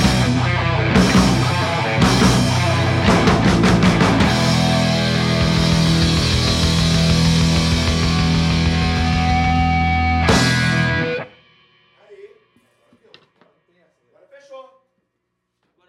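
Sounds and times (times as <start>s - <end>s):
live punk music: 0.0s - 11.9s.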